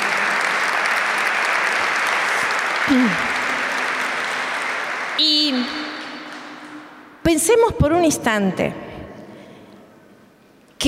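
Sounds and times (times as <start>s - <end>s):
audience applauding: 0.0s - 7.0s
speech: 2.9s - 3.4s, 5.2s - 5.9s, 7.3s - 8.8s.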